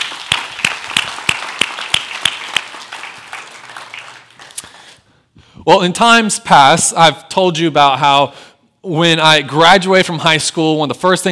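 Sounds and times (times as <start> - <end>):
audience applause: 0.0 - 4.9
speech: 5.6 - 11.2.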